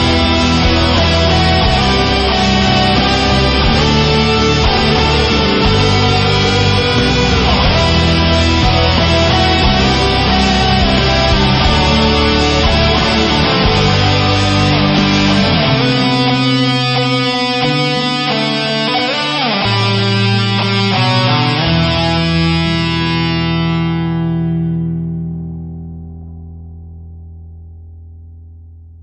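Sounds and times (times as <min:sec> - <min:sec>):
guitar: 0:00.0 - 0:29.0.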